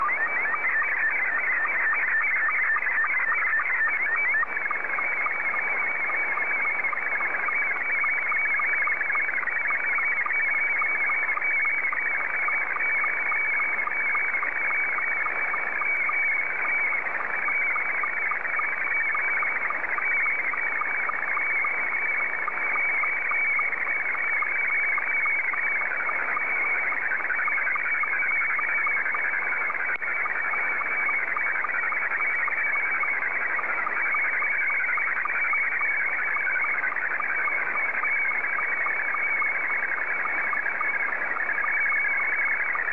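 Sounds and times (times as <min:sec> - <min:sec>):
SSTV Scottie 2 signal: 0:00.0 - 0:42.9.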